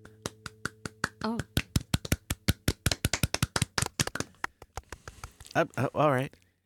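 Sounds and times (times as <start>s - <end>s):
speech: 1.2s - 1.5s, 5.6s - 6.6s
applause from a small group: 2.0s - 5.4s.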